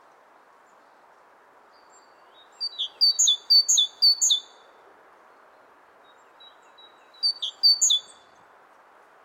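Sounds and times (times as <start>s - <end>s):
great tit singing: 1.7s - 4.6s, 6.1s - 8.2s.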